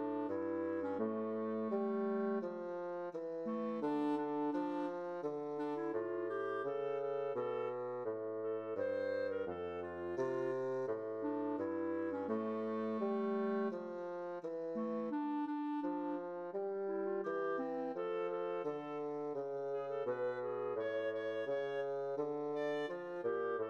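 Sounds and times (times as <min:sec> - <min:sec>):
clarinet: 0:00.0 - 0:23.6.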